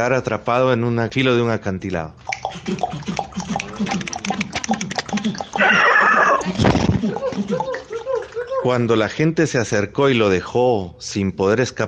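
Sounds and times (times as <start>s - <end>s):
man narrating: 0.0s - 2.2s, 8.6s - 11.8s
speech: 0.0s - 3.2s, 5.3s - 7.6s, 8.6s - 11.8s
horse whinnying: 5.6s - 6.5s
laughter: 5.6s - 8.9s.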